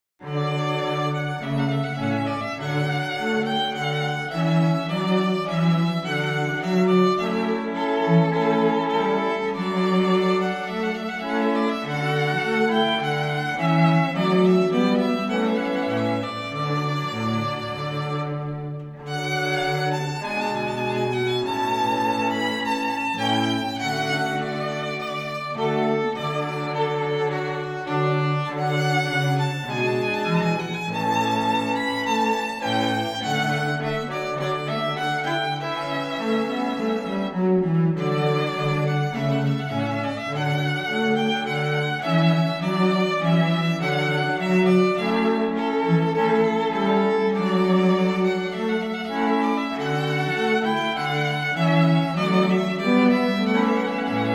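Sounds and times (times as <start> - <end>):
string trio playing: 0.2 - 54.3.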